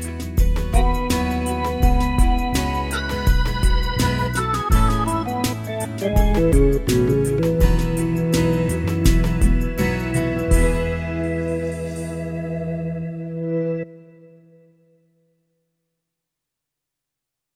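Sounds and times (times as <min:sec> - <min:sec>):
Hammond organ playing: 0:00.6 - 0:14.1.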